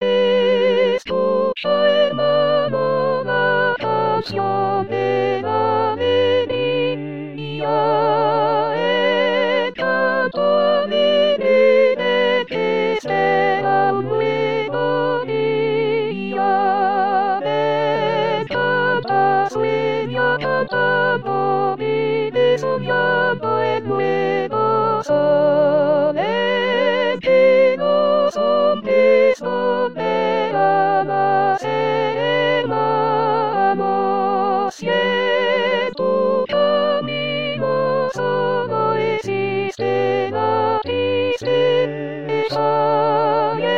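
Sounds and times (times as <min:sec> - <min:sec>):
joyful hymn music: 0:00.0 - 0:43.7
singing voice: 0:00.0 - 0:43.7.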